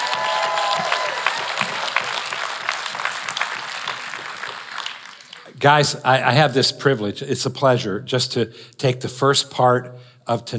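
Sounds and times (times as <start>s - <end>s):
audience clapping: 0.0s - 5.6s
speech: 5.6s - 10.5s.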